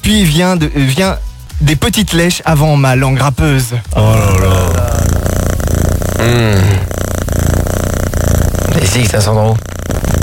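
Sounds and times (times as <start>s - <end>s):
speech: 0.1s - 4.9s, 6.2s - 6.9s, 8.8s - 9.8s
cat purring: 3.9s - 10.2s
voice-like tonal sound: 4.0s - 5.2s.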